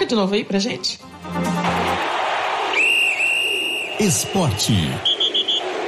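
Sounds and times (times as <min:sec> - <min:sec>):
speech: 0:00.1 - 0:01.5, 0:04.0 - 0:05.1
whistle blowing: 0:02.7 - 0:05.7.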